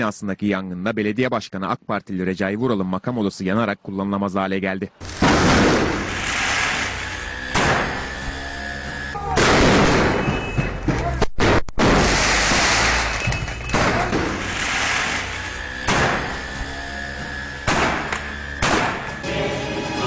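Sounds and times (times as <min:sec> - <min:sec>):
speech: 0:00.0 - 0:05.8
molotov cocktails thrown at the AK Party building in Bağlar, Diyarbakır: 0:05.0 - 0:08.4, 0:09.3 - 0:19.2.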